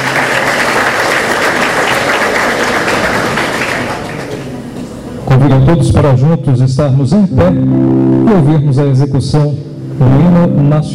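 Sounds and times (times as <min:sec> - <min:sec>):
audience applause: 0:00.0 - 0:04.6
speech: 0:05.6 - 0:10.9.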